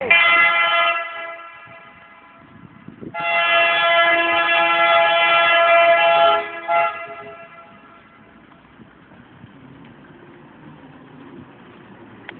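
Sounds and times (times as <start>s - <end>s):
horn honking: 0.0s - 8.4s.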